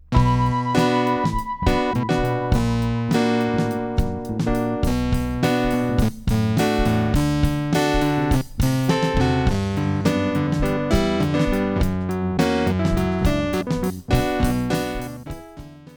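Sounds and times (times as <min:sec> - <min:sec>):
drums: 0:00.0 - 0:15.9
electric piano: 0:00.0 - 0:15.9.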